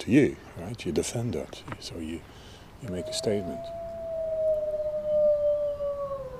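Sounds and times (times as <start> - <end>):
speech: 0.0 - 3.8
wolves howling: 2.8 - 6.3.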